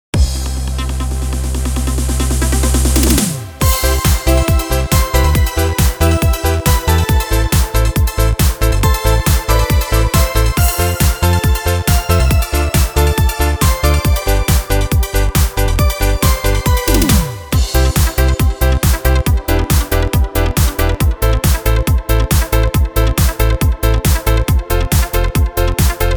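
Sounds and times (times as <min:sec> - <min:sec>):
classic disco music: 0:00.2 - 0:26.1.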